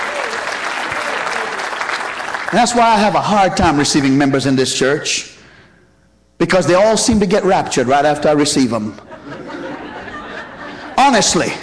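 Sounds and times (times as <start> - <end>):
audience clapping: 0.0 - 3.3
speech: 2.5 - 5.3, 6.4 - 9.1, 11.1 - 11.6
laughter: 9.0 - 11.6.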